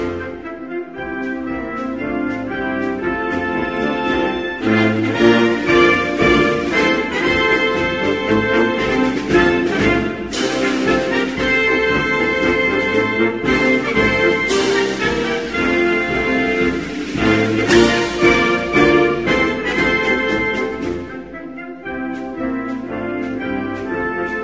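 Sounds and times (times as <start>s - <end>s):
national anthem: 0.0s - 24.4s.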